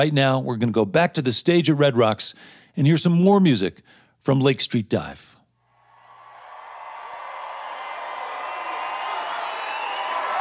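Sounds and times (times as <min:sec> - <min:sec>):
speech: 0:00.0 - 0:05.4
audience applause and cheering: 0:05.8 - 0:10.3.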